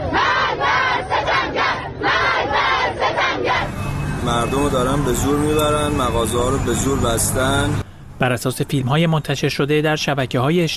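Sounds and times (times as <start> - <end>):
protesters chanting slogans in the street: 0.0 - 7.3
speech: 4.3 - 10.7.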